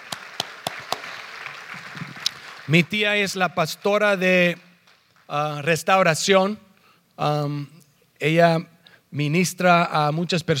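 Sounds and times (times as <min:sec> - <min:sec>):
hand claps: 0:00.0 - 0:02.8, 0:04.5 - 0:05.3
speech: 0:02.7 - 0:04.7, 0:05.3 - 0:06.6, 0:07.2 - 0:10.5.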